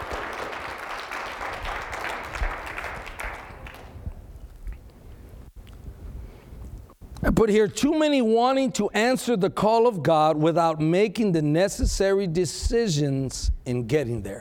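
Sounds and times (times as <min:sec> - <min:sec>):
audience clapping: 0:00.0 - 0:04.2
speech: 0:07.3 - 0:14.4.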